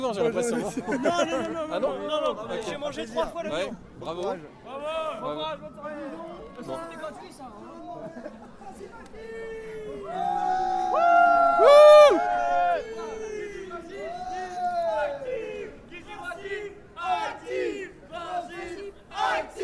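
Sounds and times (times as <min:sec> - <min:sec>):
speech: 0:00.0 - 0:12.3
laughter: 0:00.4 - 0:02.0, 0:07.8 - 0:09.4
radio jingle of chanted crowd voices and cheering: 0:09.1 - 0:19.6.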